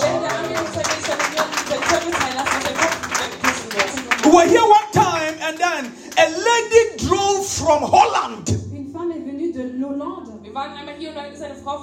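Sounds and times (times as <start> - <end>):
audience clapping hands: 0.0 - 8.2.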